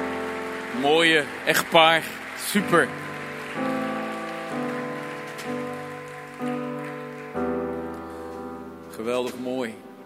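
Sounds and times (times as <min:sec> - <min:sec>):
audience applause: 0:00.0 - 0:08.3
speech: 0:00.7 - 0:03.8, 0:09.0 - 0:09.9.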